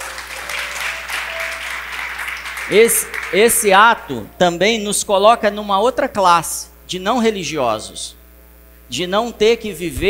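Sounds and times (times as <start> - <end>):
audience applause: 0.0 - 3.8
speech: 2.7 - 8.2, 8.9 - 10.0.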